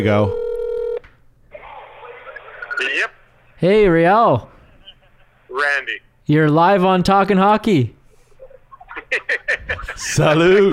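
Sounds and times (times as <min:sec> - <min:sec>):
speech: 0:00.0 - 0:00.4, 0:03.0 - 0:04.5, 0:05.5 - 0:08.0, 0:09.1 - 0:10.7
electronic telephone tone: 0:00.3 - 0:01.0
laughter: 0:08.6 - 0:10.7.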